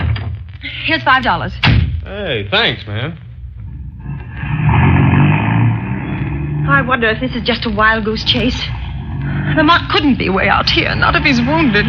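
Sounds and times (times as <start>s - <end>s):
speech: 0.6s - 3.2s, 6.7s - 11.8s
car engine driving past: 4.0s - 11.8s.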